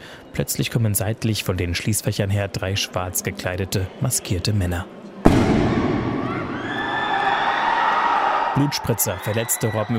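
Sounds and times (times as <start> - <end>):
speech: 0.4 - 5.0, 8.6 - 9.9
gunshot in a station hall: 5.3 - 7.4.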